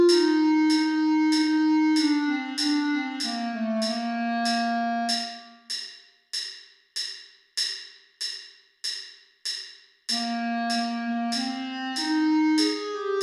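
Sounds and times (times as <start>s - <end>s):
clarinet: 0.0s - 5.6s, 10.1s - 13.2s.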